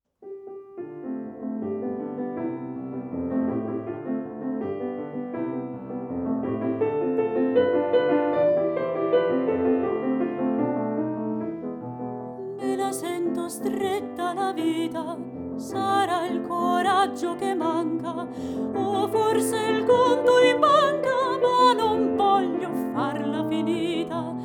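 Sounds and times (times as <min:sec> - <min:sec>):
piano: 0:00.1 - 0:24.4
voice: 0:12.4 - 0:24.4.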